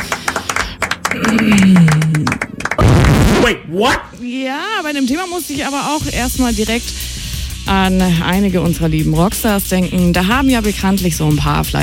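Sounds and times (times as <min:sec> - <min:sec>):
hands clapping: 0:00.0 - 0:03.6
speech: 0:03.7 - 0:07.1, 0:07.7 - 0:11.8.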